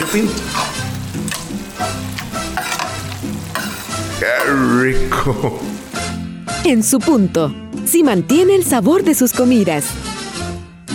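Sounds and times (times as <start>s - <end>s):
food sizzling and crackling in hot oil: 0.0s - 6.2s
speech: 0.1s - 0.7s, 4.2s - 5.8s, 6.6s - 10.2s.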